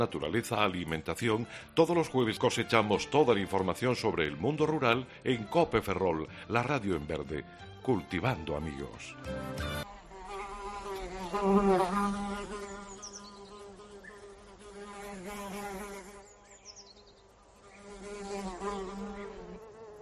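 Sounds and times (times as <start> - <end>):
speech: 0.0 - 9.9, 11.3 - 12.6
housefly buzzing: 9.1 - 20.0.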